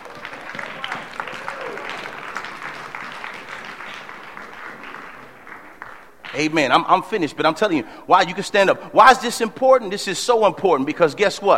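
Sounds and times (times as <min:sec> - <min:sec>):
audience applause: 0:00.0 - 0:06.5
speech: 0:06.4 - 0:11.5.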